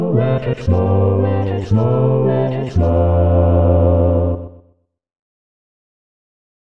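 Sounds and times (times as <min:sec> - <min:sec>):
bass line: 0:00.1 - 0:04.6.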